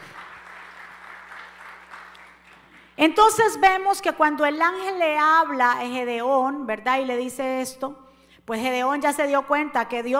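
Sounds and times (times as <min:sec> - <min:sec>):
crowd applauding: 0:00.0 - 0:03.0
speech: 0:03.0 - 0:10.1.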